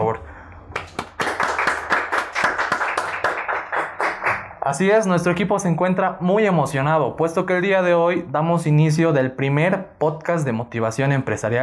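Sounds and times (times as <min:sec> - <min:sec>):
applause: 0:00.7 - 0:04.8
speech: 0:04.7 - 0:11.6.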